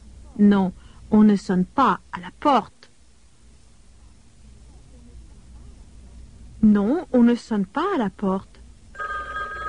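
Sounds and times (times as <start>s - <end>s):
speech: 0.4s - 2.8s, 6.6s - 8.5s
telephone bell ringing: 9.0s - 9.6s.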